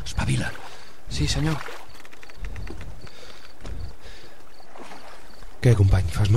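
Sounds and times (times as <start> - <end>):
oars sloshing as a soldier rows a boat toward shore: 0.0 - 5.9
speech: 0.2 - 1.8, 5.6 - 6.3.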